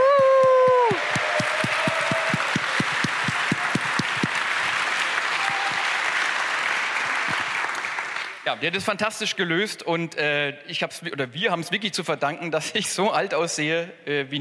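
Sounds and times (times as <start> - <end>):
thunderous audience applause in a hall: 0.0 - 8.6
speech: 8.5 - 14.3.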